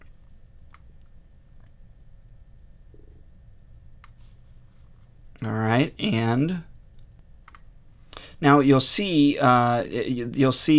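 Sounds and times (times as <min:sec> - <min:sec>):
steady hiss: 0:00.0 - 0:10.7
speech: 0:05.4 - 0:06.7, 0:08.4 - 0:10.7
computer mouse clicking on an on-screen button: 0:07.4 - 0:07.7.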